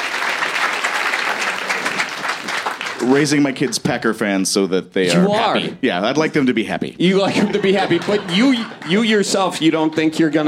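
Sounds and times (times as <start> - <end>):
audience applause: 0.0 - 3.7, 7.7 - 10.4
speech: 3.0 - 10.4
laughter: 7.0 - 10.2.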